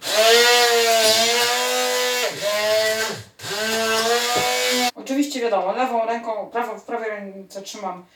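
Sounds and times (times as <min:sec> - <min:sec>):
hand blender blending avocado: 0:00.0 - 0:04.9
speech: 0:05.5 - 0:08.1.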